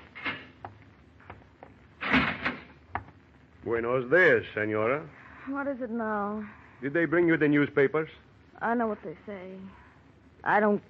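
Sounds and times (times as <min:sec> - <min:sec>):
prison cell door opening: 0:02.0 - 0:02.7
speech: 0:03.6 - 0:09.8, 0:10.4 - 0:10.8.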